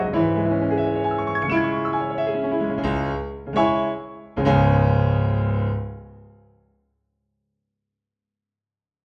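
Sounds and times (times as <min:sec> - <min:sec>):
piano etude on Pianoteq: 0:00.0 - 0:06.4.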